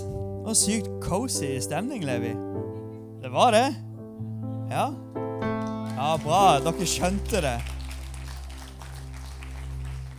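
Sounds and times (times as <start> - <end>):
speech: 0.5 - 2.6, 3.2 - 3.9, 4.7 - 5.3, 6.0 - 7.8
audience applause: 5.6 - 10.1.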